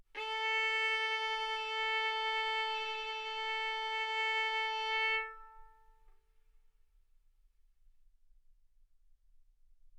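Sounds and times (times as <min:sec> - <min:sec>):
violin bowed mezzo-forte on the A string, A4 and B4: 0:00.2 - 0:06.0.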